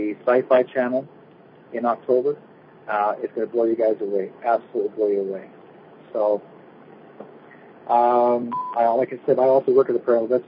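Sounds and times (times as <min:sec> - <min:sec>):
speech: 0:00.0 - 0:06.5, 0:07.9 - 0:10.4
telephone tone on a radio show call-in line: 0:07.9 - 0:09.2
short high beep: 0:08.4 - 0:08.9.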